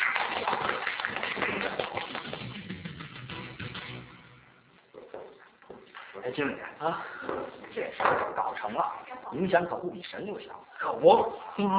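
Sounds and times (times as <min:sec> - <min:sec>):
audience applause: 0:00.0 - 0:03.0
speech: 0:06.4 - 0:11.7.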